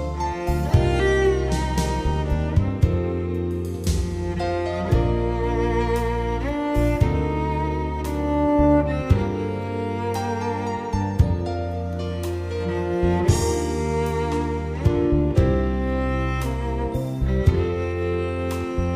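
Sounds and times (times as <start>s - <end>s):
ambient cello: 0.0s - 18.9s.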